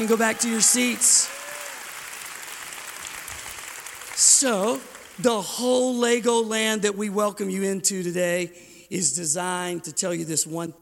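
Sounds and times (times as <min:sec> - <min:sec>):
speech: 0:00.0 - 0:01.4, 0:04.3 - 0:10.8
audience clapping hands: 0:00.0 - 0:06.0.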